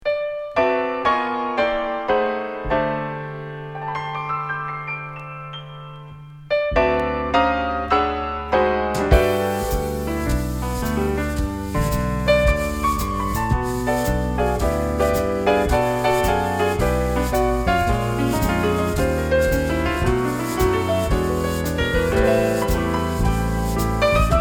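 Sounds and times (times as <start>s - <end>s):
musical trio: 0.2s - 24.3s.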